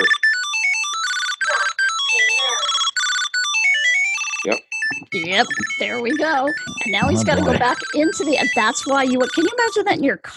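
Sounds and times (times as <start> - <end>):
luggage tracker Tile find alert ringing: 0.0 - 10.0
speech: 4.4 - 4.6, 5.2 - 10.3
laughter: 6.1 - 8.4.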